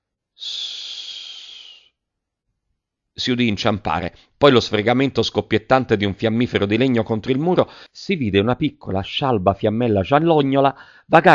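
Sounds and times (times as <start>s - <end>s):
person hissing: 0.4s - 1.9s
speech: 3.2s - 11.3s.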